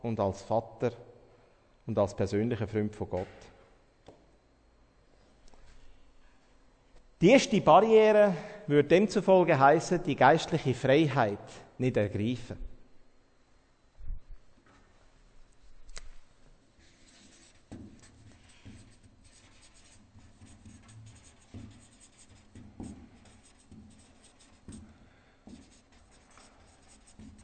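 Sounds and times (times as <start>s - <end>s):
speech: 0.0s - 1.1s, 1.9s - 3.6s, 7.2s - 12.7s
writing on a board: 16.8s - 27.4s.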